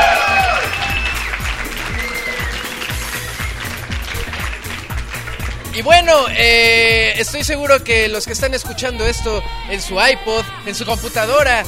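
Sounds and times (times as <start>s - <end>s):
shouts and whistles: 0.0s - 3.4s
live audience applause: 0.0s - 6.3s
speech: 5.8s - 11.6s.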